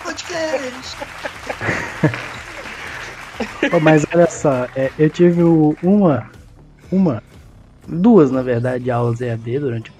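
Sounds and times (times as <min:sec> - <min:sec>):
applause: 0:00.0 - 0:06.3
laughter: 0:00.0 - 0:06.4
speech: 0:00.2 - 0:02.2, 0:03.7 - 0:07.3, 0:07.9 - 0:09.9.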